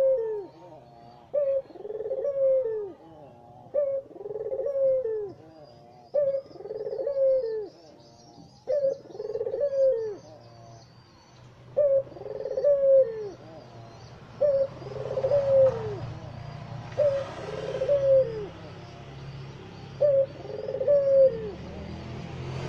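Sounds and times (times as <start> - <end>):
Barbary dove cooing: 0.0 - 11.0, 11.7 - 22.6.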